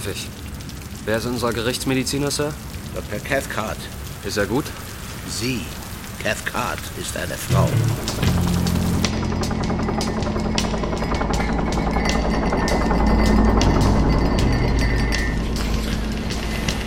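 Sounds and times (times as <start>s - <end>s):
speech: 0.0s - 8.5s
low-flying helicopter: 8.6s - 16.8s.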